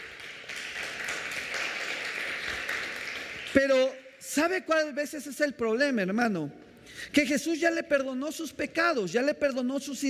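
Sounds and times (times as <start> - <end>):
audience applause: 0.0 - 3.6
speech: 3.6 - 10.0.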